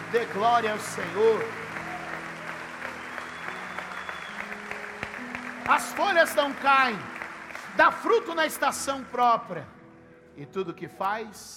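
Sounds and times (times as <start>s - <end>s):
crowd applauding: 0.0s - 9.1s
speech: 0.1s - 1.6s, 5.7s - 7.1s, 7.8s - 9.8s, 10.4s - 11.5s.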